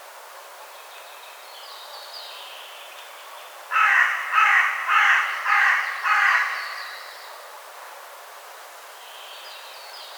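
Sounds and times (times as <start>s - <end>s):
Carrion crow Corvus corone cawing: 3.7s - 7.2s.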